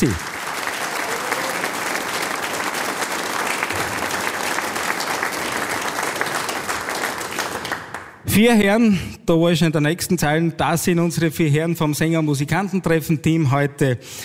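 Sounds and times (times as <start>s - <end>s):
speech: 0.0s - 0.3s, 8.4s - 14.2s
audience applause: 0.0s - 8.2s.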